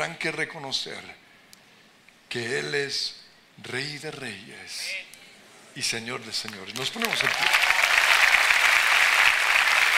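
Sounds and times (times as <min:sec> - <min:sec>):
speech: 0:00.0 - 0:01.2, 0:02.3 - 0:05.1, 0:05.8 - 0:07.8
church audience applause: 0:06.8 - 0:09.9.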